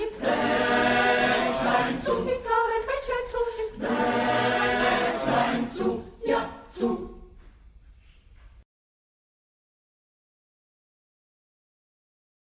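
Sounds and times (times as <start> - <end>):
choir singing: 0.0 - 7.4.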